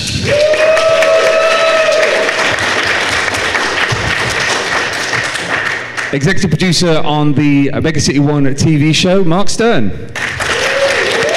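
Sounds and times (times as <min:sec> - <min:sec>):
audience applause: 0:00.0 - 0:06.2, 0:10.2 - 0:11.3
speech: 0:06.1 - 0:10.2.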